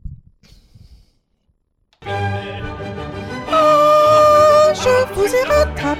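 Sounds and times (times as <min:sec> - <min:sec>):
flute: 0:02.1 - 0:05.7.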